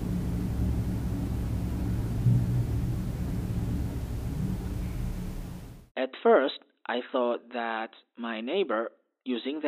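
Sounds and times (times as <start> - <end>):
elevator running: 0.0 - 5.9
speech: 6.0 - 9.6.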